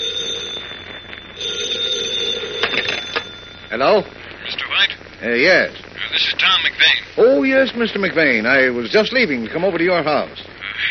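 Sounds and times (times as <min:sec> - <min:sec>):
old-fashioned telephone bell ringing: 0:00.0 - 0:04.2
speech: 0:03.7 - 0:10.8.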